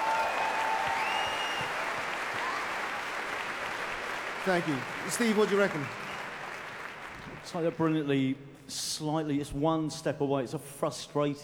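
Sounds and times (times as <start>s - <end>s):
audience applause: 0.0s - 7.7s
speech: 4.4s - 6.0s, 7.4s - 11.4s.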